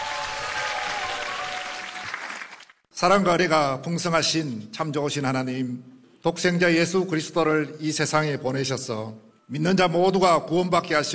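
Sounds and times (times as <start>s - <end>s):
audience applause welcoming a speaker: 0.0s - 2.8s
speech: 3.0s - 11.1s.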